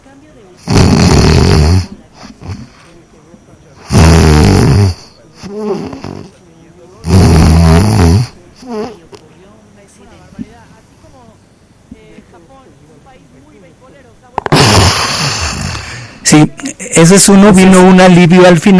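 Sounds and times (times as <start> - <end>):
quiet breaths: 0.0 - 12.4, 15.1 - 17.0
speech: 0.2 - 1.1, 16.4 - 18.7
person imitating sleep apnea with loud rasping snores: 0.6 - 2.7, 3.8 - 6.3, 7.0 - 9.0, 14.5 - 16.2.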